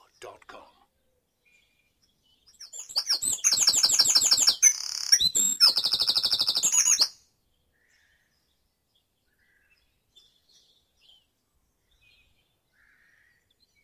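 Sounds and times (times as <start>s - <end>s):
bird trilling in a dawn chorus: 2.5s - 7.2s.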